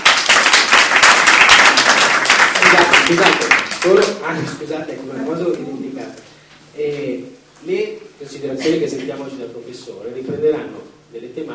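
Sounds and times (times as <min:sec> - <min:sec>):
audience applause: 0:00.0 - 0:04.2
speech: 0:02.7 - 0:11.5.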